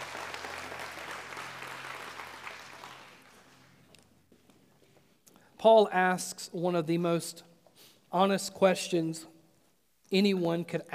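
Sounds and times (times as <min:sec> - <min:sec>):
audience hand clapping: 0:00.0 - 0:04.0
speech: 0:05.6 - 0:07.5, 0:08.1 - 0:09.3, 0:10.1 - 0:10.9.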